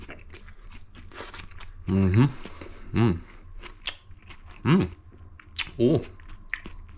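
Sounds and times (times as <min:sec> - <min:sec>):
chewing tortellini with pumpkin seeds, pumpkin seed oil and lamb's lettuce: 0:00.0 - 0:06.9
person humming appreciatively: 0:03.0 - 0:03.2.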